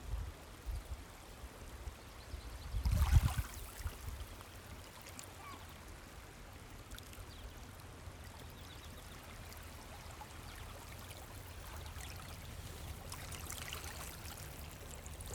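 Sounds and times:
wind in Bay Roberts Newfoundland: 0.0 - 15.3.

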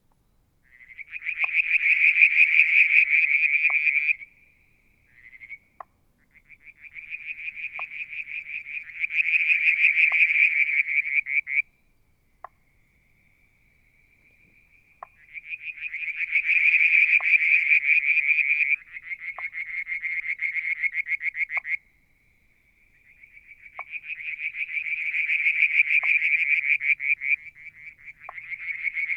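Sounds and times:
frogs giving pulsed trills: 0.6 - 11.7, 12.4 - 29.1.

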